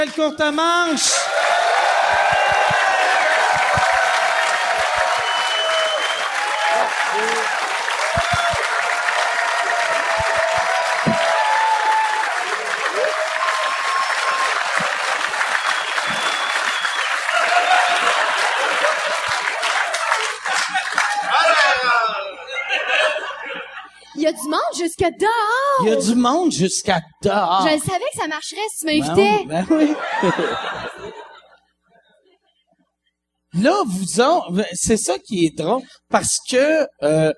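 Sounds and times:
speech: 0.0 - 3.9, 7.1 - 8.3, 24.9 - 30.9, 33.5 - 37.3
live audience applause: 1.0 - 22.3
laughter: 17.8 - 24.1, 29.2 - 31.6.

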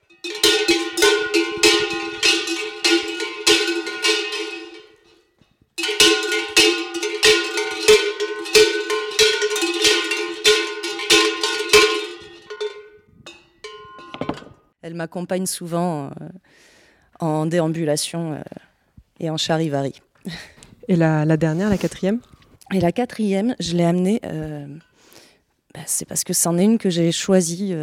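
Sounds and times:
two cowbells jangling while jumping: 0.0 - 14.7
speech: 15.0 - 18.6, 19.2 - 24.9, 25.8 - 27.8.

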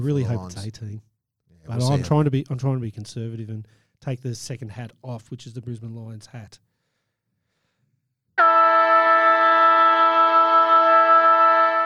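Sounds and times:
speech: 0.0 - 6.7
football ground siren: 8.4 - 11.8.

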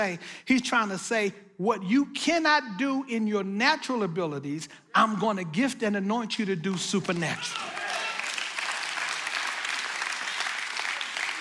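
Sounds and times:
speech: 0.0 - 7.8
audience applause: 7.4 - 11.3.

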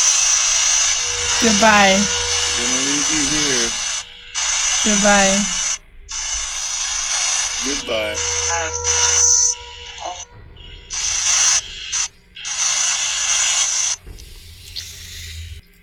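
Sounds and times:
woodpecker drumming: 0.0 - 15.6
speech: 1.4 - 3.8, 4.8 - 5.6, 7.6 - 9.0.

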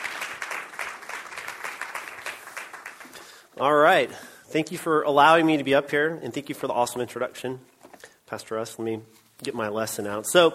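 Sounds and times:
church audience applause welcoming a speaker: 0.0 - 3.4
speech: 3.6 - 7.7, 8.3 - 10.5.

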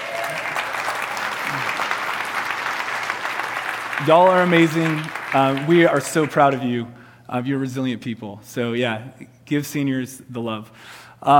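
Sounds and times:
audience clapping for graduating seniors: 0.0 - 6.8
speech: 4.0 - 11.3.

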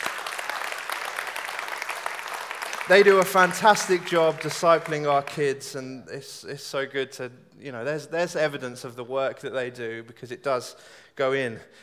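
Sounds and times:
audience applause: 0.0 - 5.4
speech: 2.9 - 11.8.

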